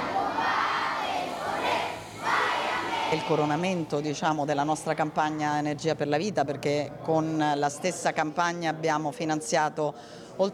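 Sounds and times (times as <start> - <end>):
children singing the national anthem in unison: 0.0 - 3.8
crowd-like wash: 0.0 - 10.5
speech: 3.1 - 10.5.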